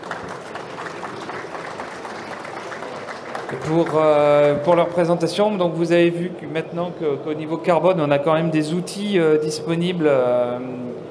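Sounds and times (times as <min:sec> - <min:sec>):
audience clapping for three speakers after a presentation: 0:00.0 - 0:05.3
speech: 0:03.5 - 0:11.1.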